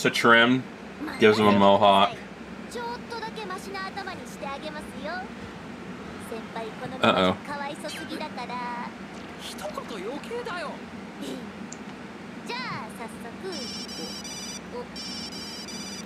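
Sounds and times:
speech: 0.0 - 2.9, 6.3 - 11.6, 12.5 - 15.4
telephone ringing in high-pitched electronic trills: 13.6 - 16.0.

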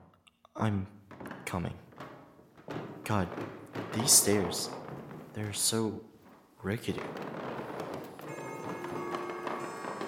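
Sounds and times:
speech: 0.6 - 1.0, 1.5 - 1.8, 3.1 - 7.4
alarm clock going off: 8.2 - 10.0.

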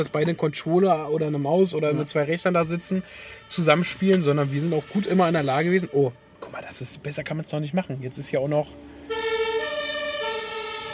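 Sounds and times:
speech: 0.0 - 9.2
fire engine siren wailing: 8.9 - 10.9.

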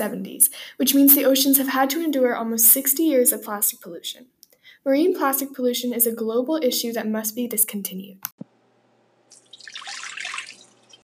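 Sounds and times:
speech: 0.0 - 8.5
pure clean water dripping and trickling: 9.3 - 11.0.

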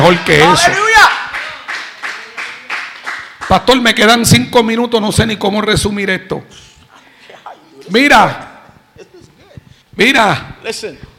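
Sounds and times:
speech: 0.1 - 0.9, 3.5 - 6.7, 7.9 - 8.5, 10.0 - 11.1
audience clapping: 1.1 - 3.9.

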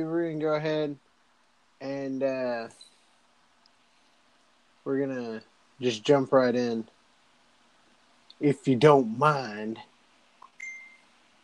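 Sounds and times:
speech: 0.0 - 1.1, 1.8 - 2.9, 4.8 - 6.9, 8.4 - 9.9
phone notification beep: 10.6 - 11.0.

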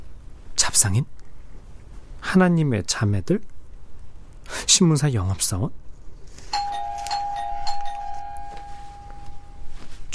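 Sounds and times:
speech: 0.6 - 1.2, 2.2 - 3.5, 4.5 - 5.8
doorbell chiming: 6.5 - 10.0.

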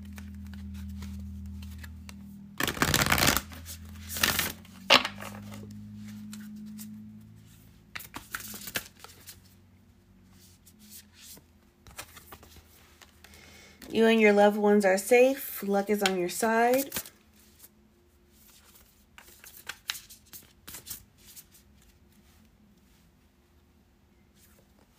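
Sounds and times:
oracle cards being shuffled: 0.0 - 9.6, 10.4 - 13.9, 15.8 - 17.7, 18.3 - 22.3
speech: 14.0 - 17.0.

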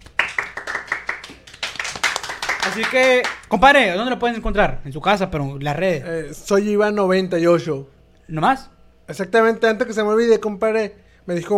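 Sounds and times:
applause: 0.0 - 3.5
speech: 2.6 - 11.5.

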